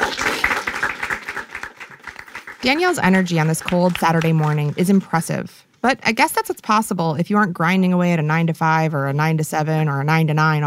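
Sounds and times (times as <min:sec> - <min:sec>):
group clapping for newcomers: 0:00.0 - 0:05.4
speech: 0:02.6 - 0:10.6.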